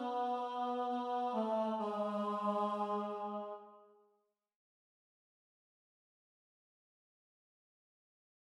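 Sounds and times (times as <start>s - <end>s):
tenor singing: 0.0s - 3.7s.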